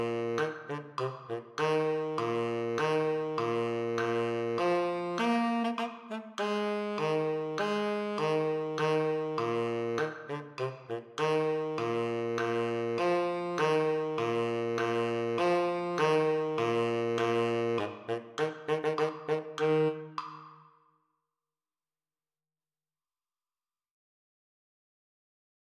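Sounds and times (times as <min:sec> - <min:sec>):
tenor saxophone playing at a slower tempo: 0:00.0 - 0:20.4.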